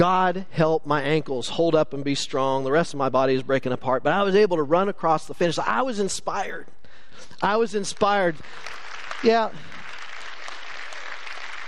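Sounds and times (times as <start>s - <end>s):
speech: 0.0s - 9.8s
audience applause: 8.4s - 11.6s.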